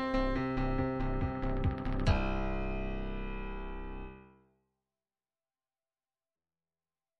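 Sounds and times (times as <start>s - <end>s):
techno trance music: 0.2s - 3.7s.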